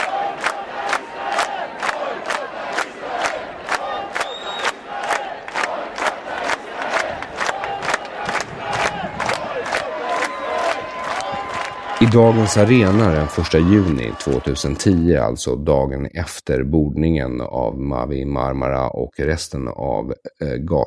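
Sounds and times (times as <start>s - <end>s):
large crowd chanting a slogan at a demonstration: 0.0s - 15.0s
speech: 12.0s - 20.8s.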